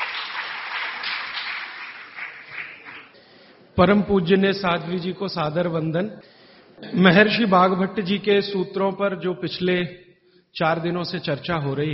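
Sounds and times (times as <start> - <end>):
crowd applause welcoming a speaker: 0.0 - 3.2
speech: 3.8 - 11.9.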